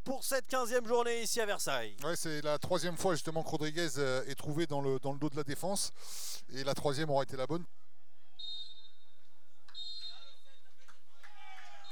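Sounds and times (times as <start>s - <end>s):
speech: 0.0s - 7.8s
referee's final whistle blasts: 8.4s - 9.0s, 9.7s - 10.4s.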